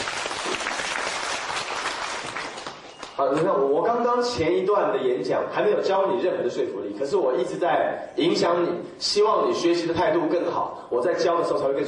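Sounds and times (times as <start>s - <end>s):
crowd clapping: 0.0s - 3.5s
speech: 3.2s - 11.8s.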